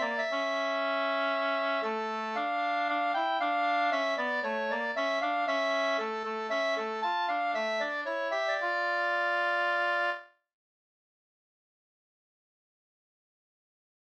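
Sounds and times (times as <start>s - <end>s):
old wedding march music: 0.0s - 10.2s.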